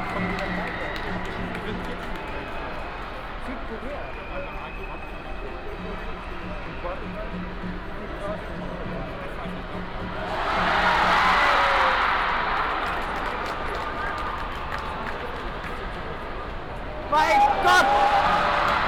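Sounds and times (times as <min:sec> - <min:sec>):
S Korean football crowd at Potsdamerplatz Berlin: 0:00.0 - 0:18.8.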